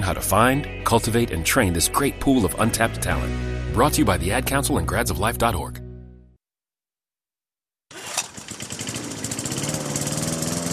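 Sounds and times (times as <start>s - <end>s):
speech: 0.0s - 5.8s
lawn mower engine running: 7.9s - 10.7s.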